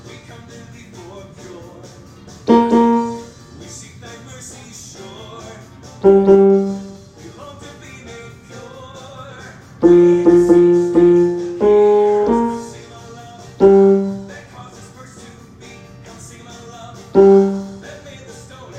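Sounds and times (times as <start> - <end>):
bass music: 2.5 - 3.3, 6.0 - 7.0, 9.8 - 12.8, 13.6 - 14.4, 17.2 - 17.9.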